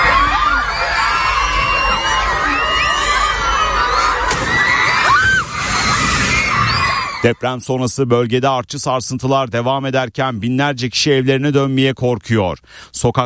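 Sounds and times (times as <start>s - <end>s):
schoolchildren shouting and screaming fleeing a primary school during an earthquake: 0.0s - 7.3s
speech: 7.2s - 13.2s.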